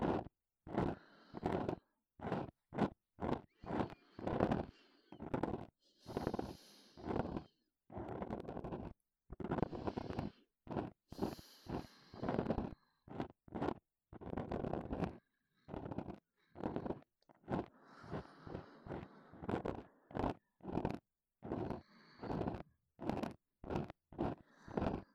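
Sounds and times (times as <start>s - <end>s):
breathing in the left ear: 0.7s - 2.5s, 3.3s - 8.9s, 9.5s - 13.3s, 15.0s - 20.8s, 21.4s - 23.1s, 24.2s - 25.1s
ear cleaning sounds in the left ear: 0.7s - 25.1s.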